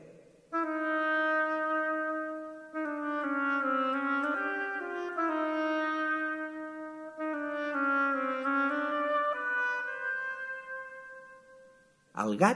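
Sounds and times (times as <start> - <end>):
oboe playing a melody: 0.5 - 12.0
speech: 12.2 - 12.5.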